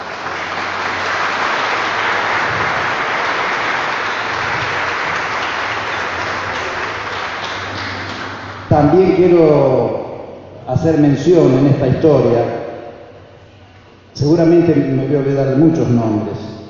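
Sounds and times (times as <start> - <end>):
crowd applauding: 0.0 - 9.4
speech: 8.7 - 10.0, 10.7 - 12.6, 14.2 - 16.5.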